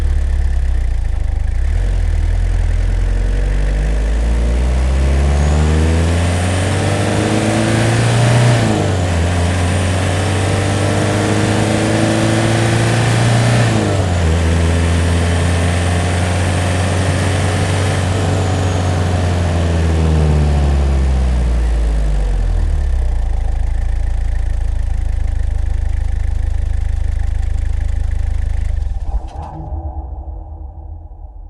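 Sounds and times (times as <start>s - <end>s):
Toyota Land Cruiser engine switching off: 0.0s - 4.0s, 21.1s - 29.3s
Toyota Land Cruiser engine starting, recorded onboard: 0.0s - 29.6s
Toyota Land Cruiser driving fast: 4.2s - 20.8s.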